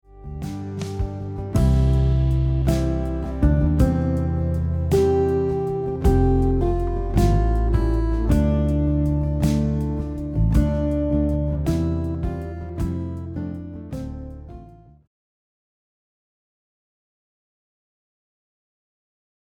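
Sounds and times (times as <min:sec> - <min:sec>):
guitar: 0:00.0 - 0:15.1.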